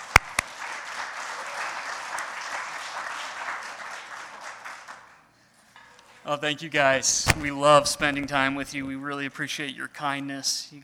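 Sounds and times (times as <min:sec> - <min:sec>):
church congregation applause welcoming a pastor and his wife: 0:00.0 - 0:05.3
speech: 0:06.3 - 0:10.8
sharp knocks: 0:07.3 - 0:08.9.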